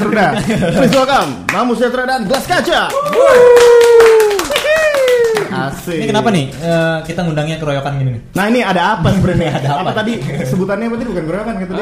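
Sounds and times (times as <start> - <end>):
laughter: 0.0 - 1.2
speech: 0.1 - 4.5, 5.4 - 11.8
applause: 2.3 - 5.5.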